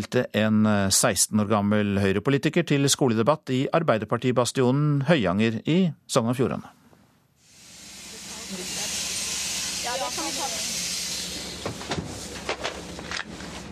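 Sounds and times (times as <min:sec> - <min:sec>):
speech: 0:00.0 - 0:06.8
bus stopping in Balestrand: 0:07.8 - 0:13.6.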